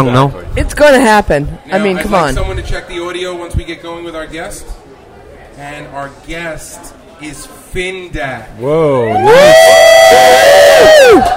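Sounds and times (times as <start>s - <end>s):
speech: 0.0s - 4.8s, 5.6s - 11.3s
crowd cheering: 8.9s - 11.3s.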